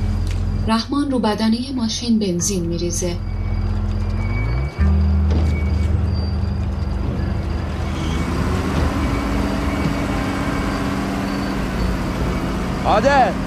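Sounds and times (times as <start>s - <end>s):
bulldozer reversing beside a freshly dug pit: 0.0s - 13.4s
speech: 0.7s - 3.3s, 12.8s - 13.4s.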